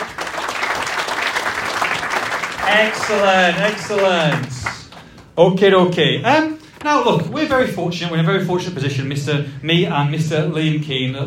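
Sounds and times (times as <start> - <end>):
audience applause: 0.0 - 4.9
speech: 2.7 - 4.6, 5.4 - 11.2.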